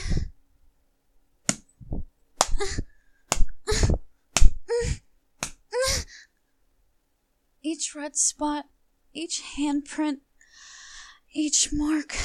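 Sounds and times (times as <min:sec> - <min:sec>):
hand slaps on skin: 0:01.5 - 0:01.7, 0:02.4 - 0:02.6, 0:03.3 - 0:03.5, 0:04.4 - 0:04.6, 0:05.4 - 0:05.6
breathy gasps and whimpers: 0:02.5 - 0:03.0, 0:03.6 - 0:05.1
speech: 0:02.6 - 0:02.9, 0:07.7 - 0:10.3, 0:11.3 - 0:12.2.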